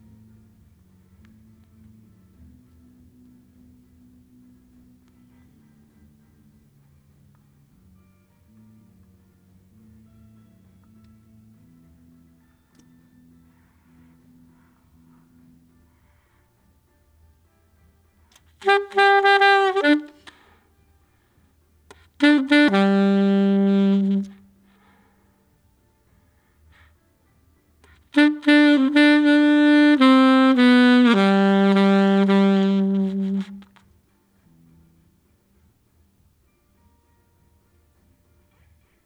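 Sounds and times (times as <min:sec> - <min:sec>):
saxophone: 0:18.6 - 0:20.6, 0:21.9 - 0:24.9, 0:27.9 - 0:34.0.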